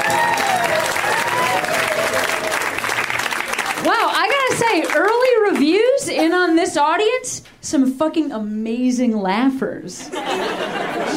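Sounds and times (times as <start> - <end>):
audience applause for a comedian at a stand-up show: 0.0 - 5.6
speech: 6.7 - 11.1
laughter: 10.1 - 11.1.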